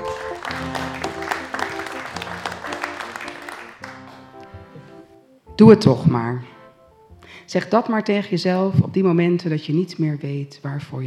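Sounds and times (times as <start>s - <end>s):
audience applause: 0.0s - 4.9s
speech: 5.6s - 6.5s, 7.5s - 11.0s.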